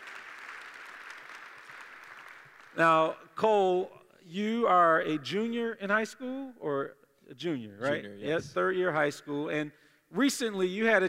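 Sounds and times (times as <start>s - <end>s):
congregation applause welcoming a speaker to the front: 0.0s - 3.0s
speech: 2.8s - 11.0s.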